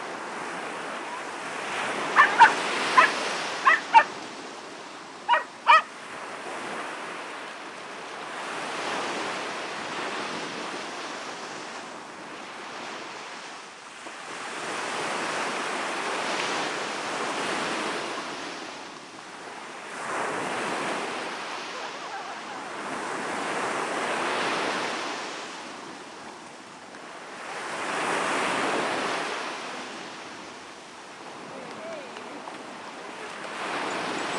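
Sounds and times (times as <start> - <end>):
waves crashing onto the shore: 0.0 - 34.3.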